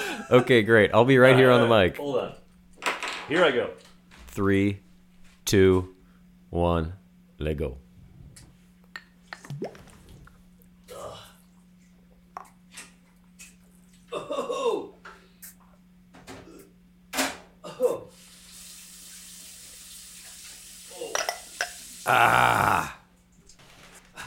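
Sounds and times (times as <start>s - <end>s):
laughter: 0.0s - 0.6s
speech: 0.3s - 2.4s, 3.3s - 3.8s, 4.4s - 4.8s, 5.5s - 7.8s, 22.1s - 22.8s
running water hiss: 18.1s - 22.2s.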